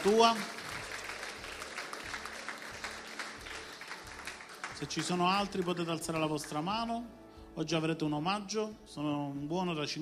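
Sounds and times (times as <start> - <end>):
speech: 0.0 - 0.6, 4.8 - 10.0
audience applause: 0.0 - 5.9.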